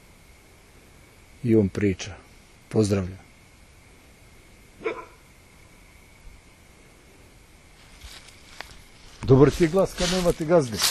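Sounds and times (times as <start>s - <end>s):
speech: 1.4s - 3.2s, 9.3s - 10.8s
dog barking: 4.8s - 5.2s.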